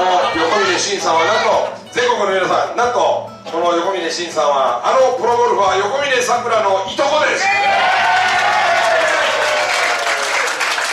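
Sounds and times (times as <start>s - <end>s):
speech: 0.8s - 7.9s
crowd applause: 7.7s - 10.9s.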